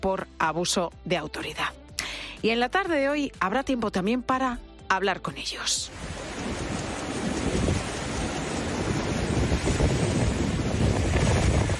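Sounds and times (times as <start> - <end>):
speech: 0.0 - 1.8, 2.4 - 6.1
sea waves crashing against rocks on the Costa da Morte: 5.9 - 11.7.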